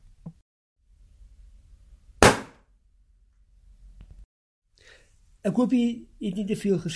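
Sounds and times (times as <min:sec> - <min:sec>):
balloon bursting: 0:02.2 - 0:02.6
speech: 0:05.4 - 0:06.9.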